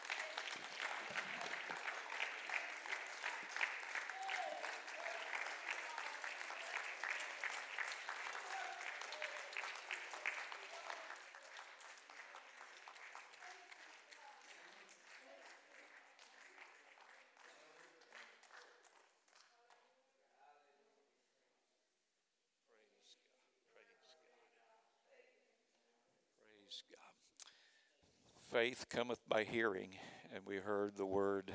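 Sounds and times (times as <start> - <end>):
audience applauding: 0.0 - 19.1
speech: 28.5 - 31.5.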